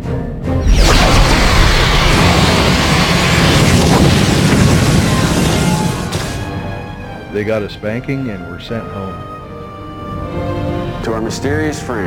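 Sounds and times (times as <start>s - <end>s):
sci-fi starship weapons firing and explosion: 0.6s - 6.8s
speech: 7.4s - 9.4s, 10.4s - 12.0s.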